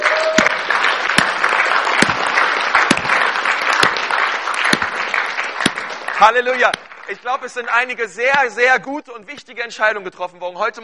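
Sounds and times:
audience applause: 0.0 - 7.6
speech: 6.2 - 10.8.

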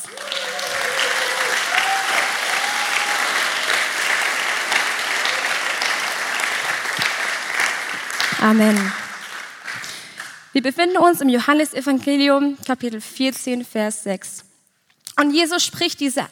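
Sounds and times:
audience applause: 0.0 - 10.4
speech: 8.4 - 9.0, 10.6 - 14.5, 15.2 - 16.2.

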